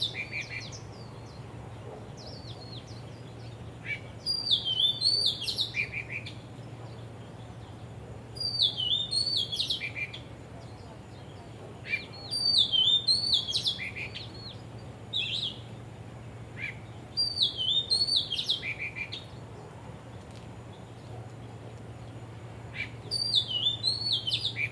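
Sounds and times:
songbird warbling: 0:00.0 - 0:15.8, 0:16.6 - 0:19.4, 0:20.7 - 0:24.7
faint low hum: 0:00.0 - 0:24.7.

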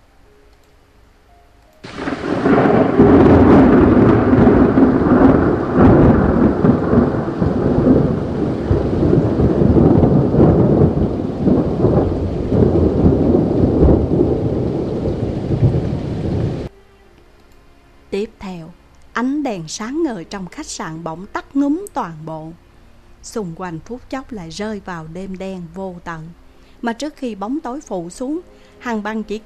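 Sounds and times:
drizzling rain at night: 0:00.1 - 0:29.4
thunderclap during drizzling rain: 0:01.8 - 0:16.7
speech: 0:19.7 - 0:22.6, 0:23.2 - 0:29.4.

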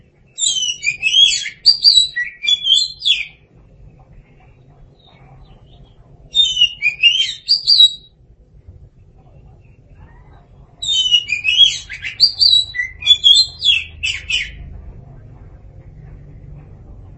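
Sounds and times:
Oriental magpie-robin song: 0:00.3 - 0:03.4, 0:04.9 - 0:08.1, 0:10.7 - 0:14.7
low background rumble: 0:03.0 - 0:06.8, 0:07.4 - 0:17.1.

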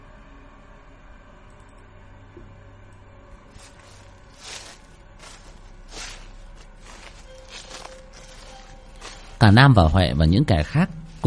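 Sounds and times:
footsteps rustling through dry leaves: 0:03.4 - 0:11.2
speech: 0:09.4 - 0:11.2.

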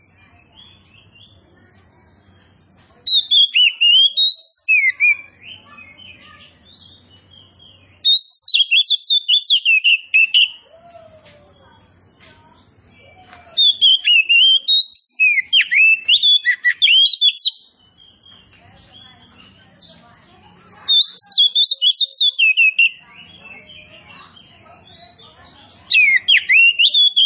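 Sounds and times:
Oriental magpie-robin whistled song: 0:00.0 - 0:01.4, 0:02.0 - 0:11.7, 0:12.8 - 0:27.2.

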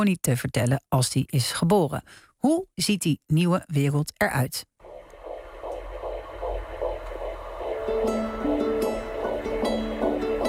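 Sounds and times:
speech: 0:00.0 - 0:04.7
heartbeat of a 12-week-old fetus: 0:04.8 - 0:10.4
low hum: 0:04.8 - 0:10.4.

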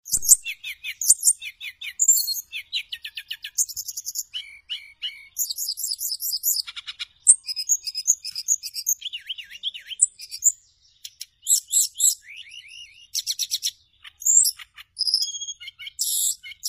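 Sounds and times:
bird song: 0:00.0 - 0:16.6.

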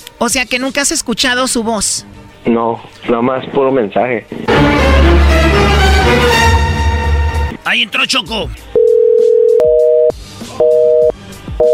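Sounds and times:
speech: 0:00.2 - 0:06.7, 0:07.6 - 0:08.6
phone busy signal: 0:08.8 - 0:11.7.

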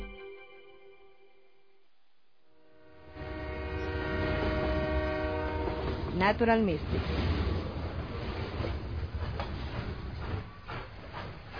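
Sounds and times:
train rumbling on rails: 0:03.1 - 0:11.5
speech: 0:06.2 - 0:07.5.

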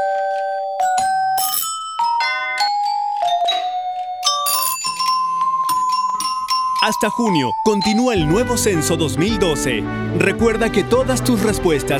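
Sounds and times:
doorbell ringing: 0:00.0 - 0:08.2
speech: 0:06.8 - 0:11.9.

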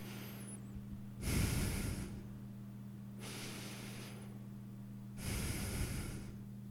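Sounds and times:
heavy breathing: 0:00.0 - 0:00.6, 0:01.2 - 0:02.4, 0:03.2 - 0:04.4, 0:05.2 - 0:06.5
low hum: 0:00.0 - 0:06.6.

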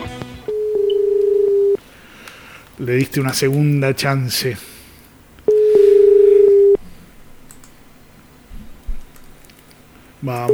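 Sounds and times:
low noise: 0:00.0 - 0:10.5
outgoing telephone call ring tone, unanswered: 0:00.5 - 0:01.8, 0:05.5 - 0:06.8
speech: 0:02.8 - 0:04.7, 0:10.2 - 0:10.5.

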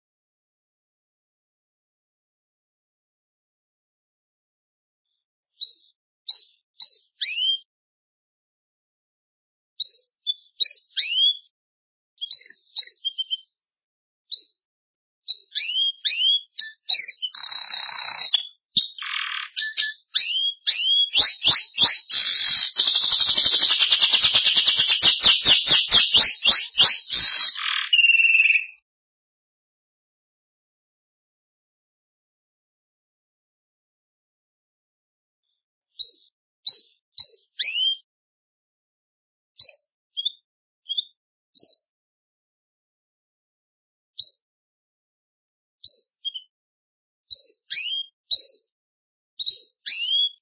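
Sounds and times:
Belgian canary song: 0:05.1 - 0:07.7, 0:09.8 - 0:11.6, 0:12.2 - 0:28.8, 0:35.4 - 0:38.1, 0:39.6 - 0:41.9, 0:44.2 - 0:44.5, 0:45.8 - 0:46.6, 0:47.3 - 0:48.8, 0:49.4 - 0:50.3.

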